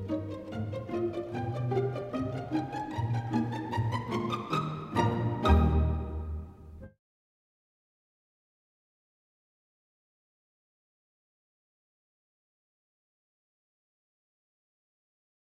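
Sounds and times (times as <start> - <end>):
pizzicato polka: 0.0 - 6.9.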